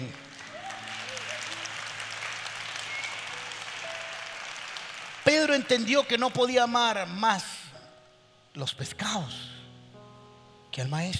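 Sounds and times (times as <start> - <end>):
applause: 0.0 - 6.5
speech: 5.6 - 7.5, 8.6 - 9.5, 10.8 - 11.1.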